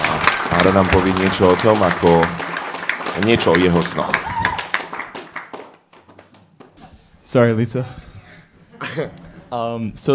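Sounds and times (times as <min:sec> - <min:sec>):
scattered hand claps from a small audience welcoming a speaker: 0:00.0 - 0:06.8
speech: 0:00.6 - 0:02.5, 0:03.2 - 0:04.4, 0:07.3 - 0:08.0, 0:09.0 - 0:10.1.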